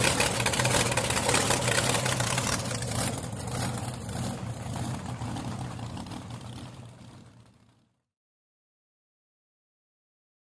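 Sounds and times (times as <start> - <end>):
drag boat engine starting and idling: 0.0 - 7.9.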